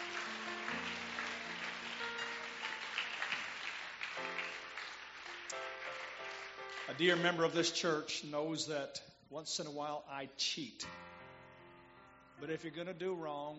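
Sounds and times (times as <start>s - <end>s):
audience hand clap for guests: 0.0s - 8.0s
speech: 6.9s - 11.1s, 12.4s - 13.5s.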